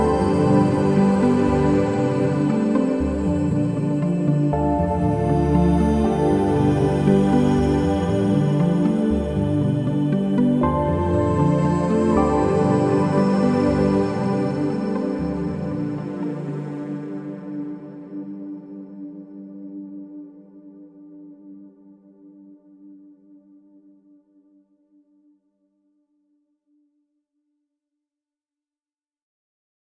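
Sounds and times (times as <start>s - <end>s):
ambience: 0.0s - 20.5s.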